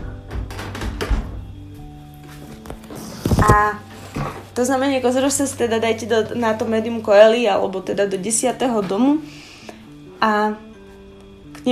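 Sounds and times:
quiet tonal music: 0.0s - 11.7s
door being pushed shut: 0.3s - 1.5s
speech: 3.4s - 3.9s, 4.6s - 9.4s, 10.2s - 10.7s.

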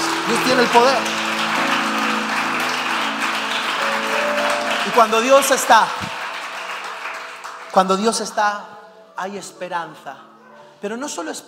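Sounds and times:
audience applauding: 0.0s - 8.4s
speech: 0.3s - 1.2s, 4.9s - 6.2s, 7.7s - 11.4s.

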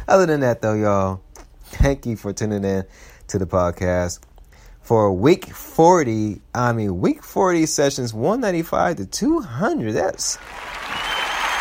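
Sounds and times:
speech: 0.1s - 10.8s
applause: 10.4s - 11.5s.

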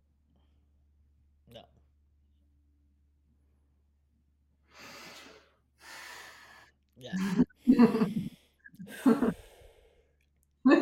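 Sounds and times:
deep breath during a coaching conversation: 4.7s - 10.1s.

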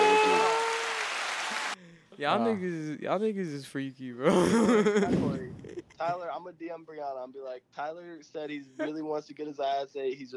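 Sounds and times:
clap sound effect: 0.0s - 1.8s
speech: 2.2s - 10.3s
laughter: 4.2s - 6.8s, 8.5s - 10.3s.

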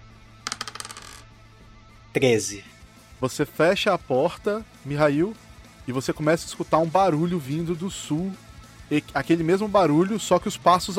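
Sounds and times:
twenty-sided die clattering across a table: 0.5s - 1.2s
speech: 2.1s - 10.9s.

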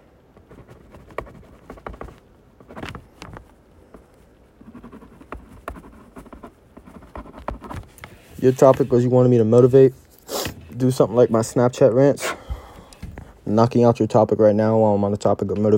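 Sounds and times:
writing something down: 0.4s - 4.0s, 4.6s - 11.4s
speech: 8.4s - 10.0s, 10.8s - 12.3s, 13.5s - 15.7s.

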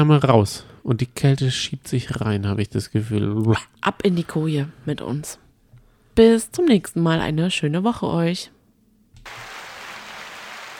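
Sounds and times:
speech: 0.0s - 5.4s, 6.2s - 8.6s
many hands clapping: 9.2s - 10.7s.

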